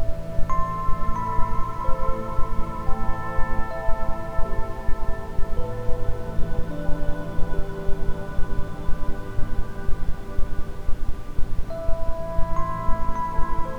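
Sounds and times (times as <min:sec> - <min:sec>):
ambient sound: 0:00.0 - 0:13.7
isochronic tones: 0:00.0 - 0:13.7.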